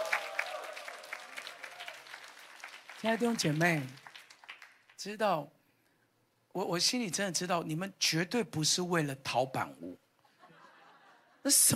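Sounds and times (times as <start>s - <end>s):
audience cheering with whoops: 0.0s - 3.8s
audience applause: 0.0s - 5.0s
speech: 3.0s - 4.0s, 5.0s - 5.6s, 6.6s - 10.0s, 11.4s - 11.7s
laughter: 10.3s - 11.5s.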